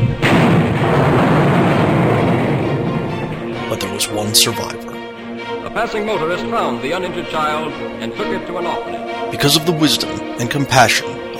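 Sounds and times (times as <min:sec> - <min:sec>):
planet exploding: 0:00.0 - 0:03.7
speech: 0:04.0 - 0:05.0, 0:05.8 - 0:11.2.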